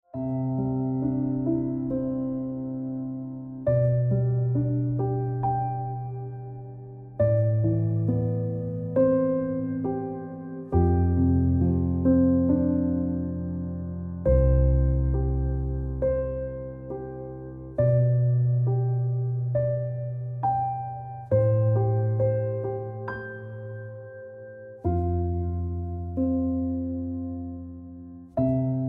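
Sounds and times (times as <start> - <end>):
piano ringtone music: 0.1 - 28.8.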